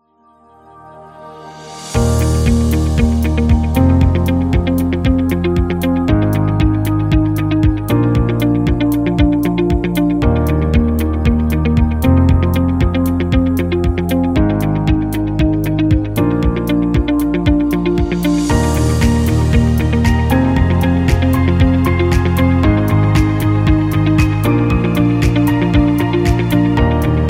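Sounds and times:
corporate music: 0.3 - 27.2.

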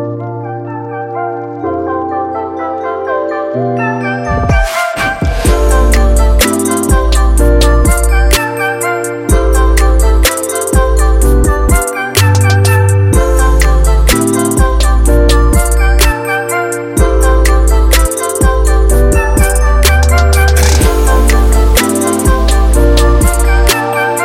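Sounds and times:
winter chill trap music: 0.2 - 24.2.

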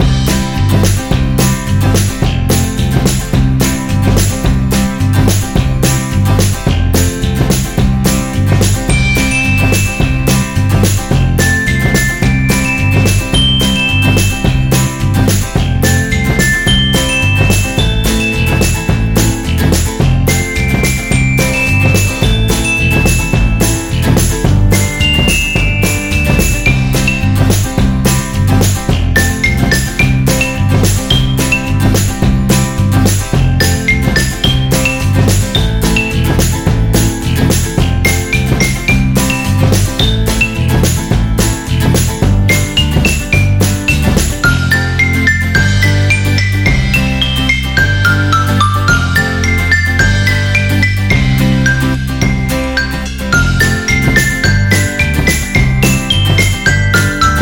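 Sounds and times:
happy music: 0.0 - 57.3.

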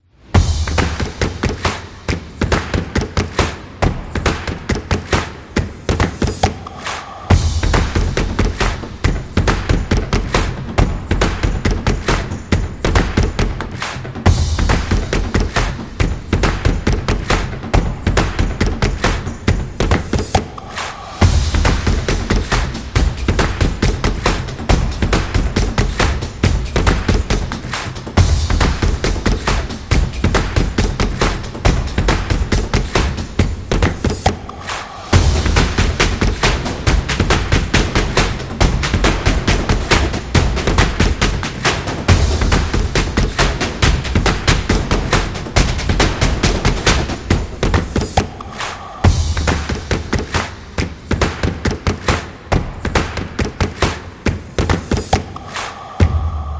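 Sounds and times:
video game power stomps: 0.4 - 56.5.

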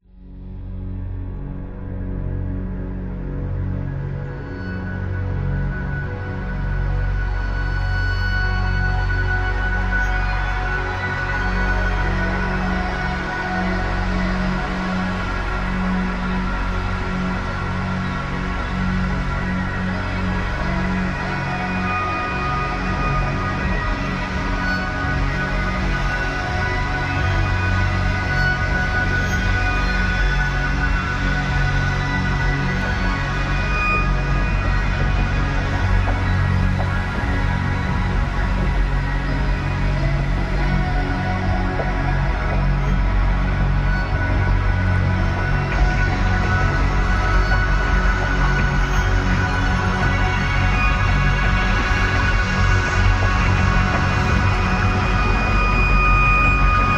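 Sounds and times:
meditation music with soft ambient pads and textures: 0.0 - 56.9.

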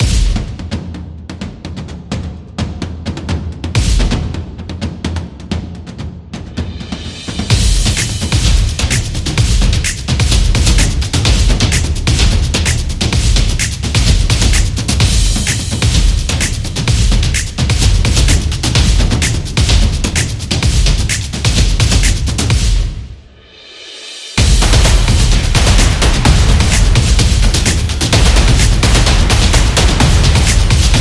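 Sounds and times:
epic drum dance music: 0.0 - 30.9.

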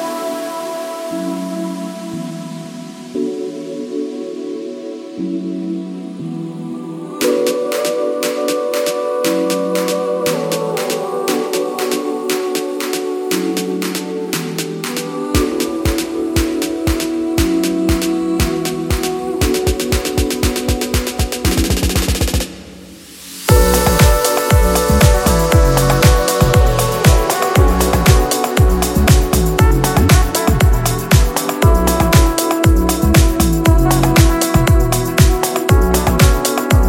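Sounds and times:
luxury style house background music: 7.2 - 22.5, 23.5 - 36.8.

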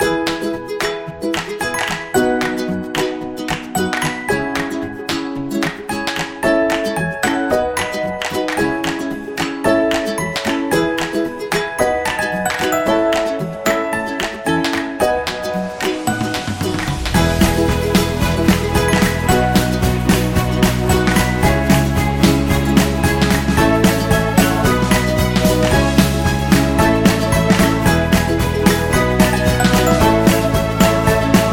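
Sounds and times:
happy cute music: 0.0 - 31.5.

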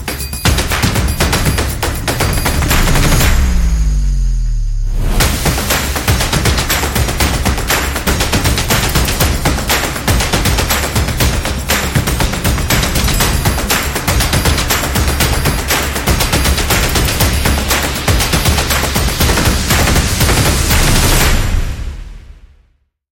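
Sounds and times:
sport drums and percussion: 0.0 - 22.4.

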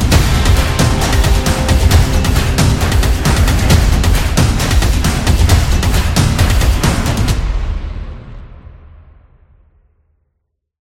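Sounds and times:
football music: 0.0 - 8.4.

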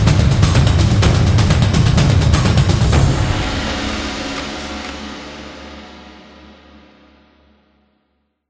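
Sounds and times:
Japanese traditional battle drums: 0.0 - 5.6.

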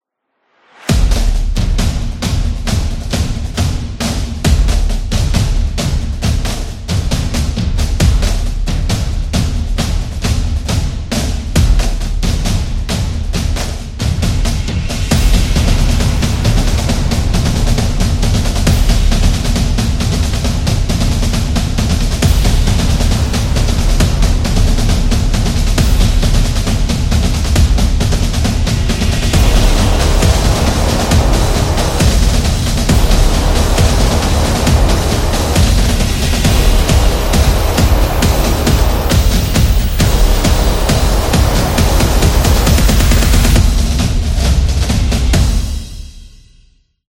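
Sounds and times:
marching band: 0.9 - 46.2.

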